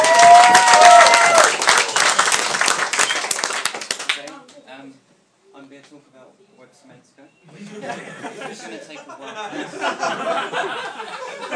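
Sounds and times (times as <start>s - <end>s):
audience applause: 0.0s - 4.3s
laughter: 7.5s - 11.5s.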